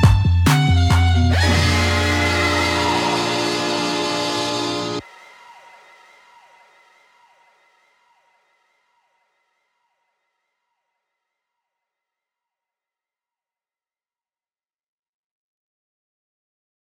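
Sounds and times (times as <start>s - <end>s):
instrumental music: 0.0s - 5.0s.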